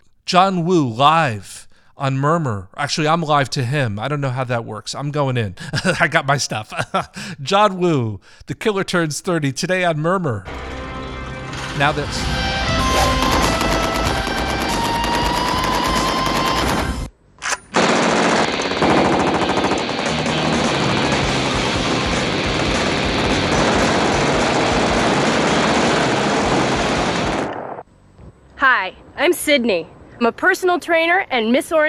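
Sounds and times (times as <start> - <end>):
speech: 0.3 - 10.8, 11.8 - 13.2, 29.2 - 31.8
laughter: 5.6 - 7.4
dense music with sustained tones: 10.5 - 17.1, 18.8 - 27.4
Tec-9 submachine gun automatic fire: 12.8 - 27.8.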